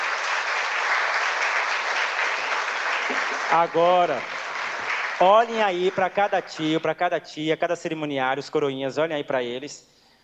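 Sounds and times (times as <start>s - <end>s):
audience applause: 0.0s - 6.8s
speech: 3.5s - 4.4s, 5.2s - 9.9s.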